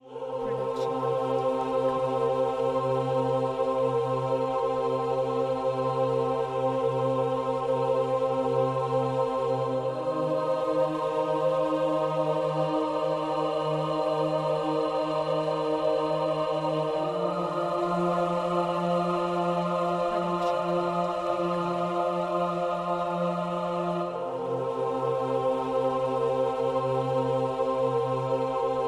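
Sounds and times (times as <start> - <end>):
epic choir singing: 0.0 - 28.8.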